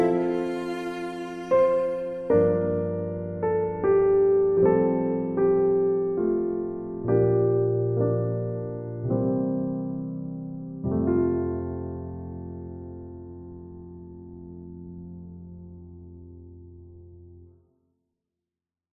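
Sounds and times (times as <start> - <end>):
cello playing instrumental Christmas music: 0.0 - 5.9
piano playing instrumental Christmas music: 0.0 - 17.6.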